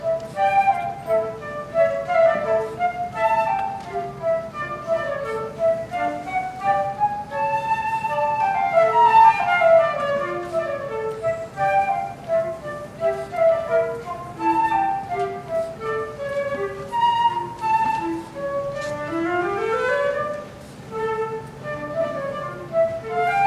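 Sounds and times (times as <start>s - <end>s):
flute duet: 0.0s - 23.4s.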